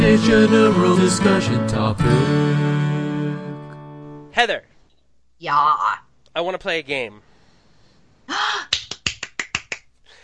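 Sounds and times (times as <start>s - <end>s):
speech: 0.1s - 3.5s, 4.4s - 4.7s, 5.4s - 7.2s, 8.3s - 8.7s
hand clapping: 8.7s - 10.0s.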